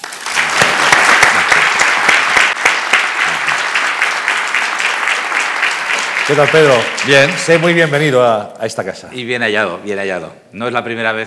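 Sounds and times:
welcoming audience applause: 0:00.0 - 0:08.1
speech: 0:06.3 - 0:11.2.

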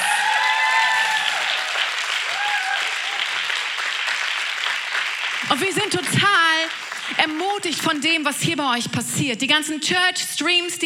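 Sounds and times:
audience applause: 0:00.0 - 0:07.7
speech: 0:05.5 - 0:10.8.

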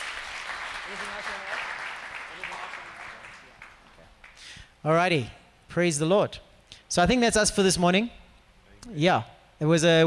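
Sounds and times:
round of applause: 0:00.0 - 0:04.6
speech: 0:00.9 - 0:01.6, 0:04.8 - 0:08.2, 0:08.8 - 0:10.0.

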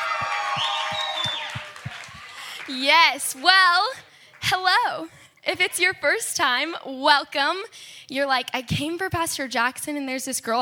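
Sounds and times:
church audience applauding the pastor: 0:00.0 - 0:03.4
speech: 0:02.7 - 0:10.6.

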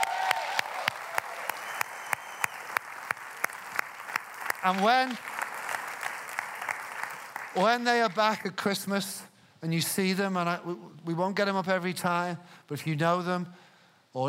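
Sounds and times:
round of applause: 0:00.0 - 0:08.3
speech: 0:04.6 - 0:05.3, 0:07.6 - 0:14.2.

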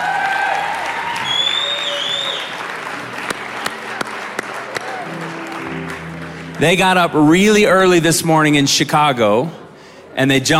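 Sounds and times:
whistles and cheers: 0:00.0 - 0:02.8
audience applause for a choir: 0:00.0 - 0:07.6
speech: 0:06.6 - 0:09.6, 0:10.2 - 0:10.5.

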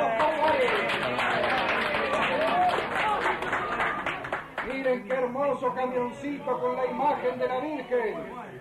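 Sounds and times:
crowd applauding and cheering: 0:00.0 - 0:04.8
speech: 0:05.0 - 0:08.5.

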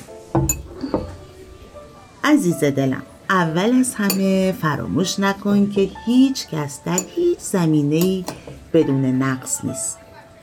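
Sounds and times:
tea glass clinking: 0:00.4 - 0:01.1, 0:04.0 - 0:04.4, 0:06.9 - 0:07.4, 0:08.0 - 0:08.6
speech: 0:02.3 - 0:10.0.

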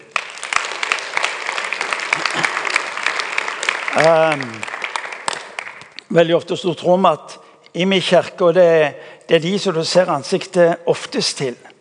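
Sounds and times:
applause: 0:00.0 - 0:06.0
speech: 0:04.0 - 0:04.7, 0:06.1 - 0:11.7.

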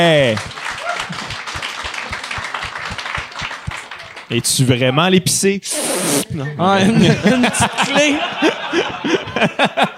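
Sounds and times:
speech: 0:00.0 - 0:00.6, 0:04.3 - 0:09.9
hand clapping: 0:00.0 - 0:04.3
laughter: 0:06.2 - 0:09.9.

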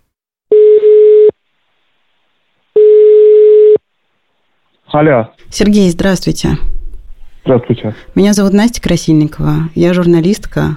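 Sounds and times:
phone line's ringing tone during a call: 0:00.5 - 0:01.4, 0:02.8 - 0:03.8
speech: 0:04.9 - 0:06.7, 0:07.4 - 0:10.7.

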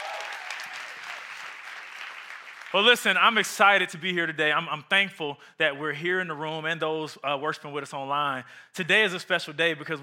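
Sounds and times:
audience applause: 0:00.0 - 0:03.1
speech: 0:02.7 - 0:10.0.

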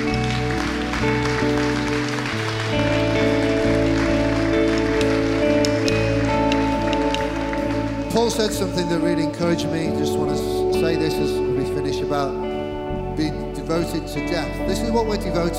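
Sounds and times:
audience applause: 0:00.0 - 0:09.8
sustained keyboard chords: 0:00.0 - 0:15.5
speech: 0:08.3 - 0:12.6, 0:13.2 - 0:15.5.

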